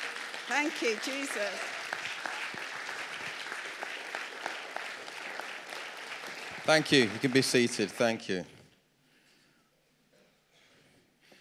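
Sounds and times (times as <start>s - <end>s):
audience applause: 0.0s - 8.2s
speech: 0.5s - 2.1s, 6.7s - 8.6s.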